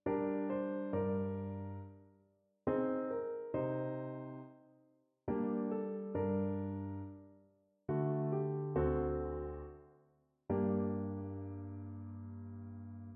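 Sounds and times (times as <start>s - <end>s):
classical piano piece: 0.0s - 2.0s, 2.7s - 4.7s, 5.3s - 9.9s, 10.5s - 13.1s.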